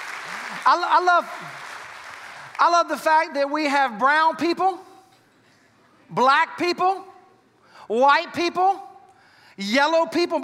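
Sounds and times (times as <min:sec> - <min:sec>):
audience clapping: 0:00.0 - 0:03.0
speech: 0:00.6 - 0:01.6, 0:02.6 - 0:04.9, 0:06.1 - 0:07.1, 0:07.9 - 0:08.9, 0:09.6 - 0:10.4.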